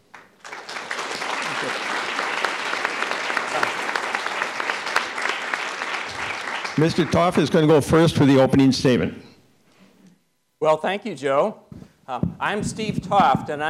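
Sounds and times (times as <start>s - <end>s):
audience applause welcoming candidates: 0.0s - 7.9s
speech: 6.8s - 9.3s, 10.6s - 13.6s.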